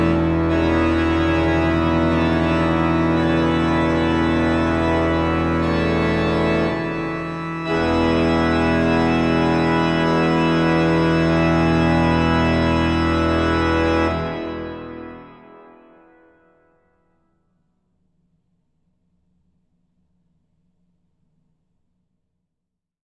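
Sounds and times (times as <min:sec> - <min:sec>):
organ with pedal: 0:00.0 - 0:16.2.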